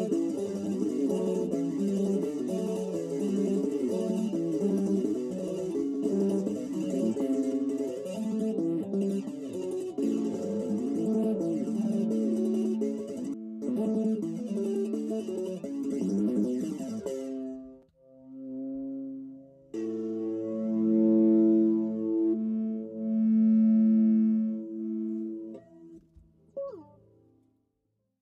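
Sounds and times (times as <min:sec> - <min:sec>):
background music: 0:00.0 - 0:17.7, 0:19.8 - 0:25.6.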